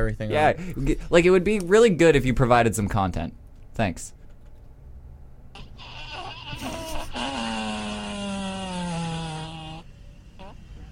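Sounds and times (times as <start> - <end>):
speech: 0.0 - 4.2
person farting: 5.6 - 9.8.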